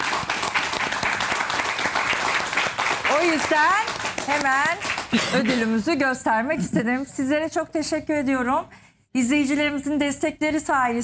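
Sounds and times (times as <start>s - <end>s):
crowd applause: 0.0s - 5.2s
speech: 3.2s - 11.0s.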